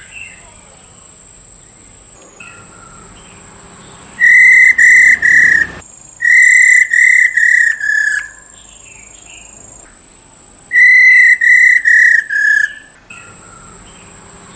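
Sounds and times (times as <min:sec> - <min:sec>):
Black-throated laughingthrush whistling: 0:01.7 - 0:08.4, 0:10.7 - 0:14.5.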